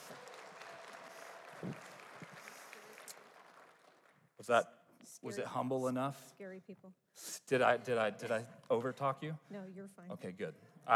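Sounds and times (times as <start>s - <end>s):
audience applause: 0.0s - 4.3s
speech: 1.6s - 1.9s, 4.4s - 10.9s.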